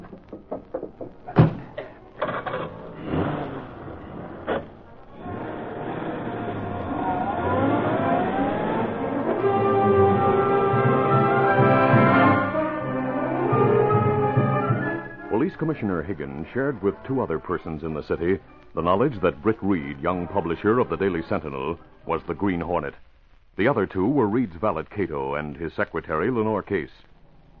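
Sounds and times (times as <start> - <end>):
car driving away: 1.6 - 15.4
speech: 15.8 - 27.1.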